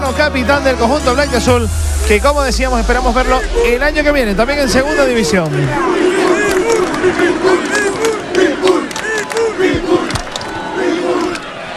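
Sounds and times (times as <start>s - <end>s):
speech: 0.1s - 6.3s, 7.1s - 7.8s
stadium crowd chanting a player's nickname: 3.1s - 11.7s.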